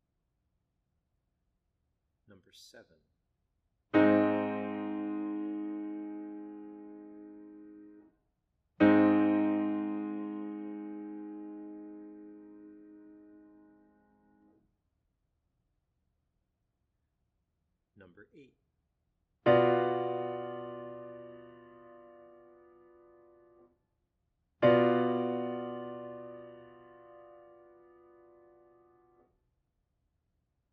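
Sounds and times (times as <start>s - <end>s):
chords: 4.0s - 8.0s, 8.8s - 14.5s, 19.5s - 23.6s, 24.6s - 29.1s.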